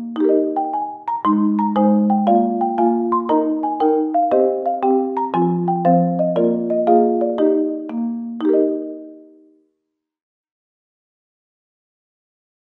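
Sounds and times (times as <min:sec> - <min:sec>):
marimba: 0:00.0 - 0:09.5.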